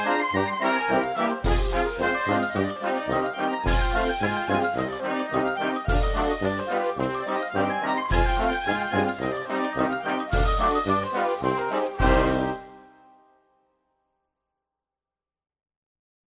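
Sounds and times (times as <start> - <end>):
band playing a dance: 0.0 - 12.7.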